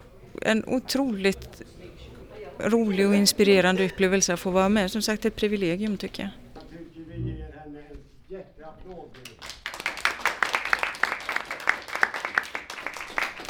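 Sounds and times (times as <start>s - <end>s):
speech: 0.4s - 1.8s, 2.6s - 6.4s
audience applause: 9.4s - 13.4s.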